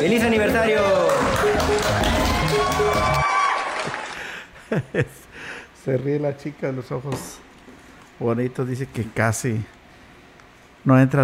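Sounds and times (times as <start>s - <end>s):
music playing: 0.0s - 3.4s
speech: 0.0s - 3.4s, 4.7s - 7.5s, 8.2s - 9.8s, 10.8s - 11.2s
crowd applause and cheering: 0.0s - 4.5s
laughter: 3.9s - 5.3s.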